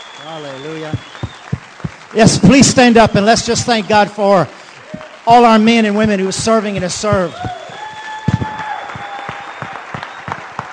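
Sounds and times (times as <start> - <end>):
audience applause: 0.0 - 10.7
speech: 0.2 - 1.2, 2.1 - 4.6, 5.3 - 7.6.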